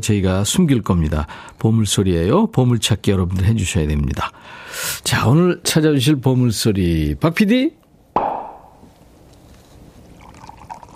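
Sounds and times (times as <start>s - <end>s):
speech: 0.0s - 7.8s
champagne bottle popping open: 8.2s - 8.9s
champagne pouring: 10.0s - 10.9s.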